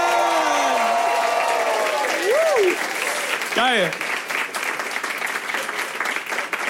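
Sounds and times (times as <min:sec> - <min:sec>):
audience cheering: 0:00.0 - 0:03.9
audience applause: 0:00.0 - 0:06.6
speech: 0:03.6 - 0:04.1.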